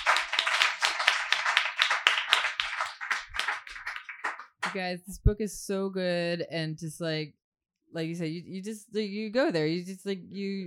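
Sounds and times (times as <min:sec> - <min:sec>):
audience clapping: 0:00.0 - 0:04.8
speech: 0:04.7 - 0:10.6.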